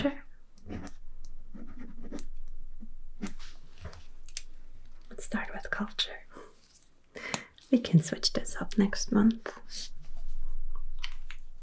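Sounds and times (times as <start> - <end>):
speech: 0.0 - 0.2, 5.3 - 6.2, 7.7 - 10.0
pen scratching across paper writing January planning notes: 0.6 - 2.3.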